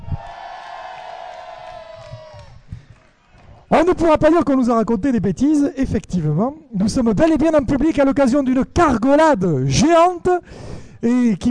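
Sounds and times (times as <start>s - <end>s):
person whooping at a giant cargolade gathering: 0.0s - 2.6s
speech: 3.7s - 11.4s.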